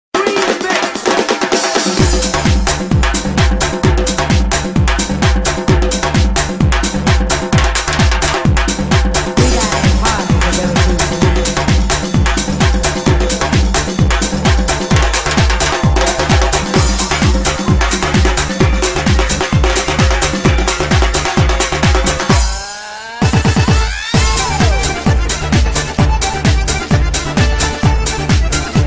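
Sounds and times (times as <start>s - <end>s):
disco lezginka dance music: 0.2s - 28.8s.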